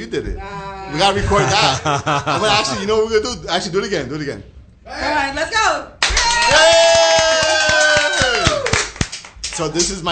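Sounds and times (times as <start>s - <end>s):
speech: 0.0s - 5.9s, 9.6s - 10.1s
laughter: 1.2s - 2.9s
audience clapping: 6.0s - 10.1s.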